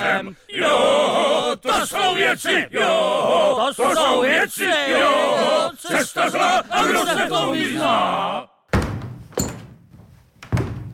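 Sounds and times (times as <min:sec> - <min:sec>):
speech: 0:00.0 - 0:08.5
wooden thuds pounding on a floor: 0:08.7 - 0:10.9.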